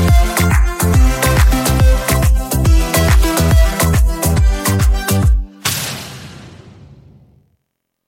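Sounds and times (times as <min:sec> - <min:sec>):
backing track: 0:00.0 - 0:05.6.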